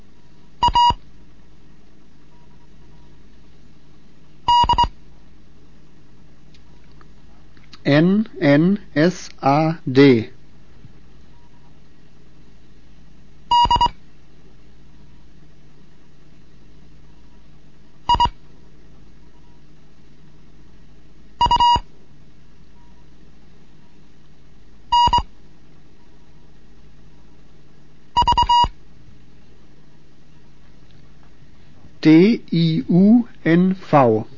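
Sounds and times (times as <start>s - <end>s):
faint low hum: 0.0s - 34.3s
Morse code beeps: 0.6s - 1.0s, 4.5s - 4.9s, 13.5s - 13.9s, 18.1s - 18.3s, 21.4s - 21.8s, 24.9s - 25.2s, 28.2s - 28.7s
speech: 7.9s - 10.4s, 32.0s - 34.3s.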